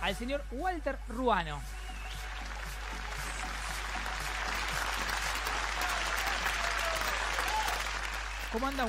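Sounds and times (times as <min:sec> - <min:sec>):
speech: 0:00.0 - 0:01.8, 0:08.5 - 0:08.8
audience clapping: 0:01.8 - 0:08.8.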